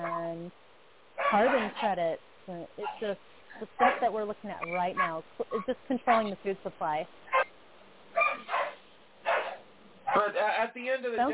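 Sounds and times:
quiet hiss: 0:00.0 - 0:11.3
dogs fighting, barking and yelping: 0:01.2 - 0:01.9, 0:03.8 - 0:06.4, 0:07.3 - 0:07.5, 0:08.2 - 0:10.6
speech: 0:01.3 - 0:07.4, 0:10.1 - 0:11.3.

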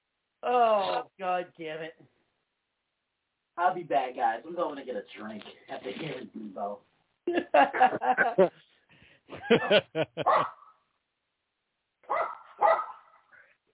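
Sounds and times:
speech: 0:00.5 - 0:02.2, 0:03.6 - 0:08.7, 0:09.3 - 0:10.6
laughter: 0:07.3 - 0:08.6, 0:09.3 - 0:10.4
small dog barking: 0:10.2 - 0:10.8, 0:12.0 - 0:13.2.

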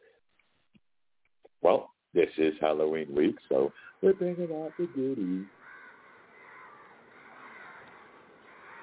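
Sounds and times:
speech: 0:01.6 - 0:05.6
ravens cawing: 0:03.6 - 0:08.8.

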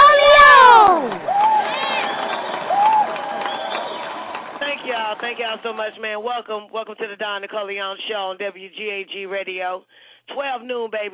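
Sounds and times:
crowd cheering and applause greeting a talk-show host: 0:00.0 - 0:06.0
speech: 0:05.6 - 0:11.1.

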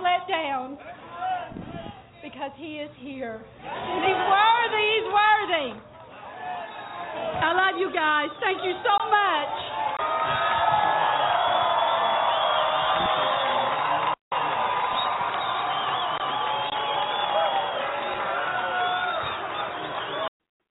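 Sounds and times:
speech: 0:02.6 - 0:05.9, 0:07.2 - 0:10.5
rally crowd cheering: 0:03.6 - 0:20.3.

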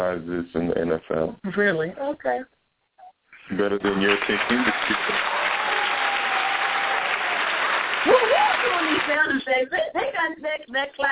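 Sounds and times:
speech: 0:00.0 - 0:02.6, 0:03.5 - 0:05.4, 0:08.0 - 0:11.1
clap: 0:03.8 - 0:09.4.

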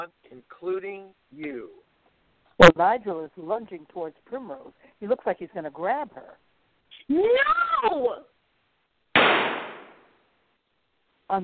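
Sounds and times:
speech: 0:00.0 - 0:01.8, 0:02.6 - 0:08.3, 0:11.3 - 0:11.4
gunshot: 0:09.2 - 0:10.1.

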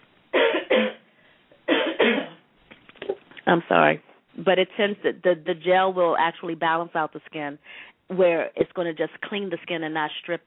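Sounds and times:
coughing fit: 0:00.3 - 0:02.4
speech: 0:03.5 - 0:10.4.

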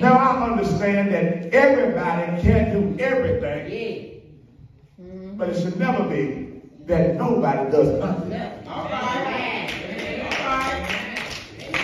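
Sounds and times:
speech: 0:00.0 - 0:04.1, 0:05.0 - 0:11.0
crowd voices: 0:08.2 - 0:11.8
audience clapping: 0:09.6 - 0:11.8.

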